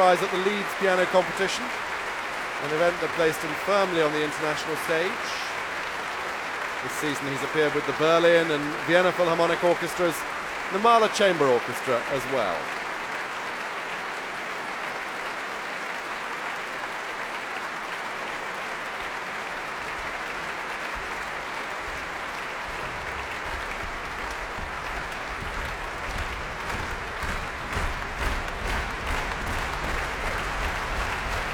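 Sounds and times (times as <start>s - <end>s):
speech: 0.0s - 1.9s, 2.6s - 5.5s, 6.8s - 12.8s
slow hand clapping: 0.0s - 15.2s, 15.8s - 31.5s
audience feet stamping: 21.0s - 31.5s.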